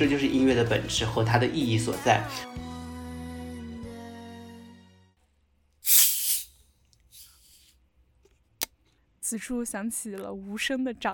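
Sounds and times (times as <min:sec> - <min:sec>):
speech: 0:00.0 - 0:02.7, 0:09.3 - 0:11.1
cola can cracked open with fizzing hiss: 0:05.8 - 0:06.6.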